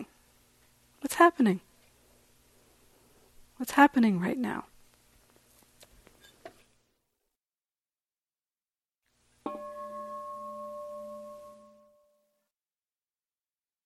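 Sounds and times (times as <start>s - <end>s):
speech: 1.2s - 1.7s, 3.6s - 4.7s
meditation bell ringing: 9.5s - 12.2s.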